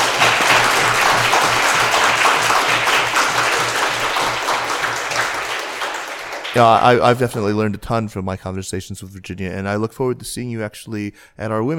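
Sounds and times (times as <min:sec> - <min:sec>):
audience applause: 0:00.0 - 0:07.3
speech: 0:06.6 - 0:11.7.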